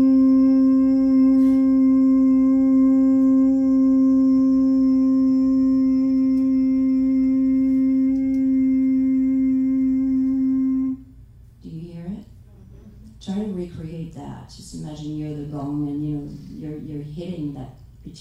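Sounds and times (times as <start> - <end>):
chanted mantra with prolonged hum: 0.0 - 11.1.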